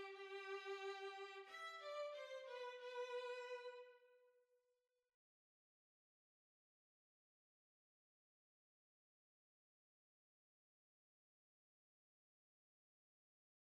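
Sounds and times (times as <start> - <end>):
violin: 0.0 - 4.1.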